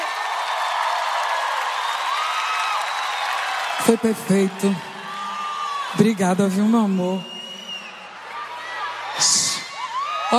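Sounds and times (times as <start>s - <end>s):
audience clapping: 0.0s - 5.9s
crowd whistles and cheers: 0.0s - 10.3s
speech: 3.8s - 4.9s, 6.0s - 7.3s.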